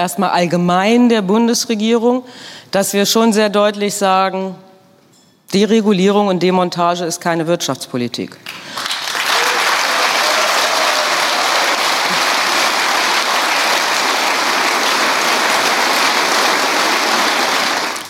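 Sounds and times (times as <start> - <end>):
speech: 0.0 - 4.6, 5.5 - 9.0
crowd applauding: 8.5 - 18.0.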